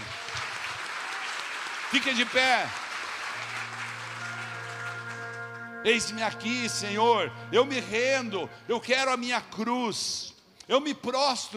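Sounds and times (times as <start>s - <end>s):
audience applause: 0.0s - 5.8s
speech: 1.9s - 2.8s, 5.8s - 11.5s.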